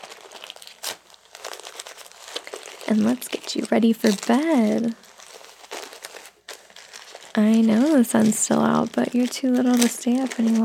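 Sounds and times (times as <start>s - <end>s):
baby's diaper crinkling as it is taped up: 0.0s - 10.6s
tearing rip while taping a baby's diaper: 0.0s - 10.6s
speech: 2.9s - 5.0s, 7.4s - 10.6s.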